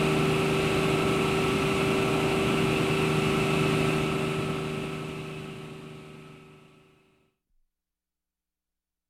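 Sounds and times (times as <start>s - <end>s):
Luftwaffe helicopter starting up heard in the cockpit: 0.0s - 7.2s.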